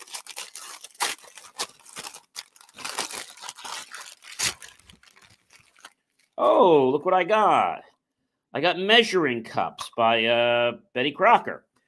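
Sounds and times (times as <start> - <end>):
holiday gift wrapping paper torn open to unwrap a present: 0.0 - 6.4
speech: 6.4 - 7.9, 8.5 - 11.7.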